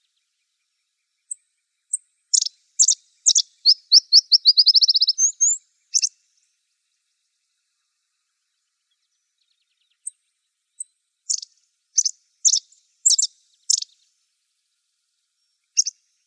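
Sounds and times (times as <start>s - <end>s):
Emberizids calling: 2.3s - 6.1s.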